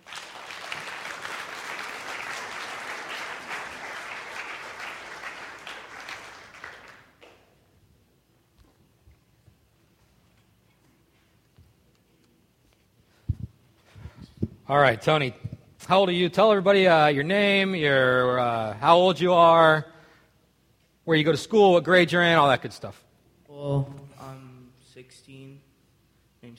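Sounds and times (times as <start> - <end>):
audience applause: 0.0 - 7.5
speech: 14.7 - 19.9, 21.1 - 23.1.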